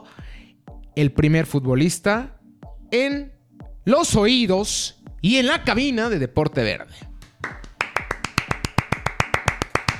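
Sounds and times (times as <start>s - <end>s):
speech: 1.0s - 7.1s
clapping applause: 7.2s - 9.9s.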